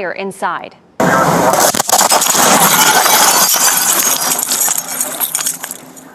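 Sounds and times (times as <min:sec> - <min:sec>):
home in New Jersey exploding during a fire: 0:01.0 - 0:05.9.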